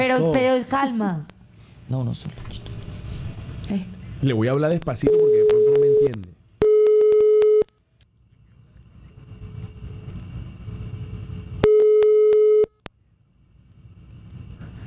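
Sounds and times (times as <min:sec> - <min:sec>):
speech: 0:00.0 - 0:01.3, 0:01.9 - 0:02.7, 0:03.7 - 0:06.3
low rumble: 0:00.0 - 0:14.8
phone line ringing tone while dialing: 0:05.0 - 0:07.7, 0:11.6 - 0:12.8.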